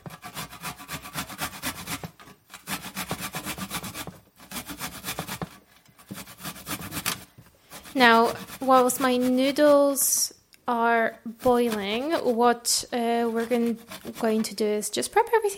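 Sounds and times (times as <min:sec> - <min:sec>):
garlic cloves being grated: 0:00.0 - 0:10.2, 0:10.9 - 0:14.7
speech: 0:08.0 - 0:15.5.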